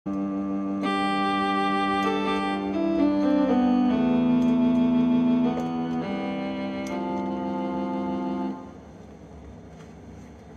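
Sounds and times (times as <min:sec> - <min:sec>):
synthesizer: 0:00.1 - 0:08.9.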